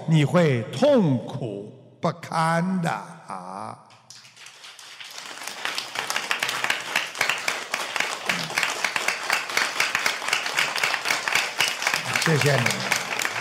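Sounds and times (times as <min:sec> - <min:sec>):
speech: 0:00.1 - 0:03.9, 0:12.2 - 0:12.9
applause: 0:03.9 - 0:13.3.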